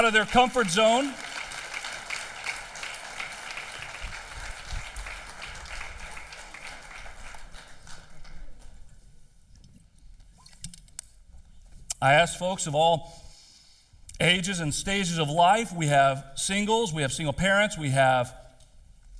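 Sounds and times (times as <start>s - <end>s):
speech: 0.0s - 1.3s, 12.0s - 13.3s, 14.2s - 18.4s
audience applause: 0.0s - 8.8s.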